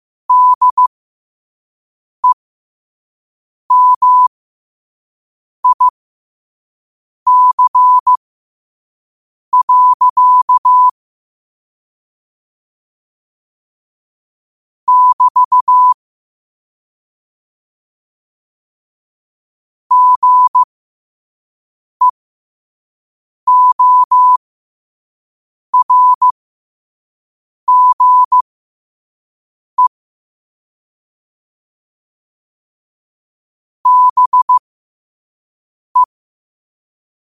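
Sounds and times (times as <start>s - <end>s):
morse code at 5 wpm: 0.3s - 0.9s, 3.7s - 4.3s, 5.6s - 5.9s, 7.3s - 8.2s, 9.6s - 11.0s, 14.9s - 16.0s, 19.9s - 20.7s, 23.5s - 24.4s, 25.8s - 26.3s, 27.7s - 28.4s, 33.8s - 34.6s.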